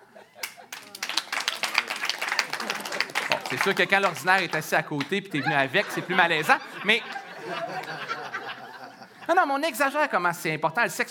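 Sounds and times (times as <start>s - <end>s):
laughter: 0.0s - 9.5s
audience applause: 0.4s - 5.9s
speech: 3.5s - 8.2s, 9.3s - 11.0s.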